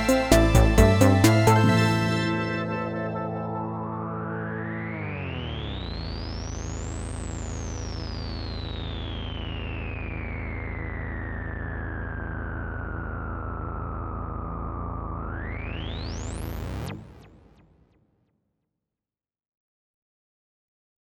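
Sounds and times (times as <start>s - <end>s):
synthpop music: 0.0s - 6.0s.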